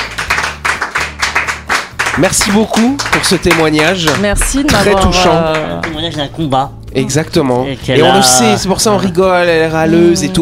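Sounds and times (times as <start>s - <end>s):
studio applause: 0.0s - 6.5s
speech: 2.2s - 10.4s.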